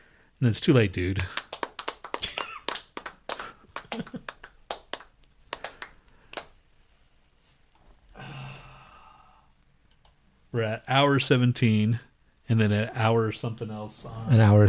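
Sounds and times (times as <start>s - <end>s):
speech: 0.4s - 1.4s, 10.6s - 14.6s
hand claps: 1.2s - 6.6s.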